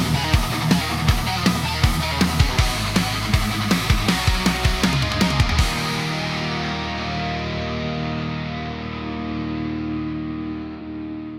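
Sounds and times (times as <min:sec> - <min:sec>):
heavy distortion: 0:00.0 - 0:11.3
fast double kick drums: 0:00.2 - 0:05.9.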